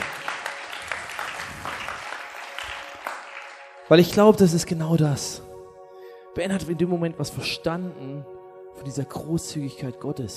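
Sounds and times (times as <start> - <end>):
crowd clapping: 0.0 - 4.2
speech: 3.9 - 5.4, 6.4 - 10.3.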